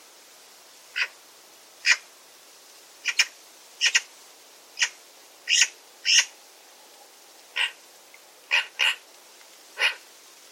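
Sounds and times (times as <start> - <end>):
bird giving sharp high calls: 3.0 - 4.1, 4.8 - 6.3, 7.6 - 7.8, 8.5 - 9.0.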